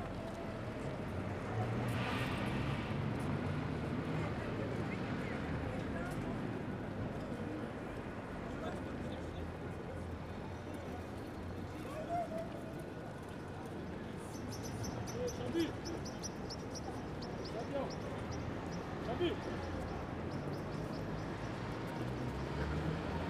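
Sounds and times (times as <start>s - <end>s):
St Denis market place ambience at 8pm: 0.0s - 23.2s.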